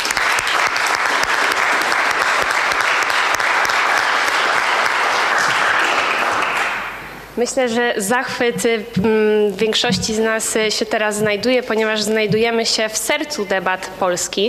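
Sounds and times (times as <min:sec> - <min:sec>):
large audience applause: 0:00.0 - 0:07.0
speech: 0:07.4 - 0:14.4.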